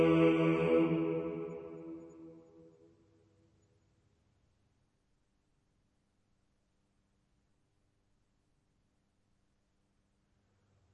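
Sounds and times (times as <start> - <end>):
irmos of a canon in tone eight chanted with ison drone: 0.0 - 2.4.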